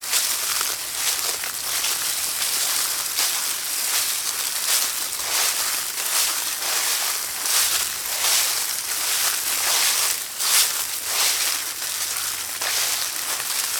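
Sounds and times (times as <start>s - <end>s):
dry leaves: 0.0s - 13.7s.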